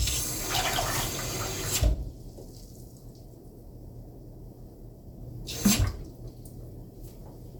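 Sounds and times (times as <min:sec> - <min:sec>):
water poured into a device: 0:00.0 - 0:03.3.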